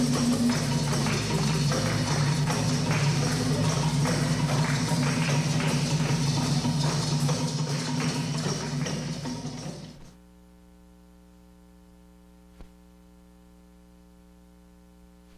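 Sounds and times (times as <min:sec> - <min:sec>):
drums: 0:00.0 - 0:10.1.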